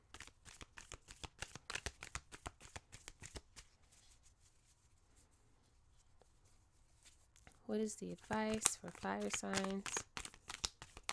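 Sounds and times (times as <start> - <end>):
crystal gemstone oracle cards being shuffled: 0.1 - 4.3, 8.1 - 11.1
speech: 7.7 - 10.1.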